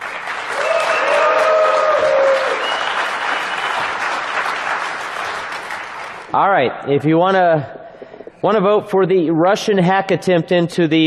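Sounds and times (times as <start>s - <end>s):
crowd applauding: 0.0s - 6.3s
crowd cheering and whooping: 0.5s - 4.4s
speech: 6.3s - 7.8s, 8.4s - 11.0s.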